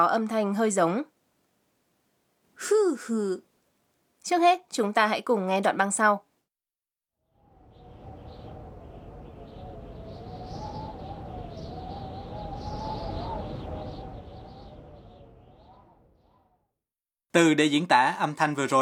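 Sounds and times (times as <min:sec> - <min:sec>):
speech: 0:00.0 - 0:01.1, 0:02.6 - 0:03.5, 0:04.2 - 0:06.3, 0:17.4 - 0:18.8
strong wind blowing: 0:07.4 - 0:16.5.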